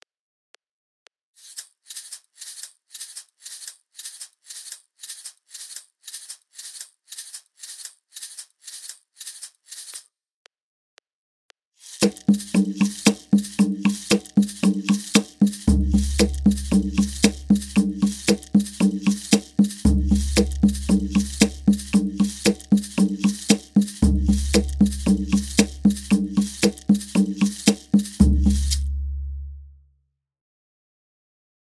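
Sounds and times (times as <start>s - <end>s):
Latin American cumbia music: 11.9s - 29.6s.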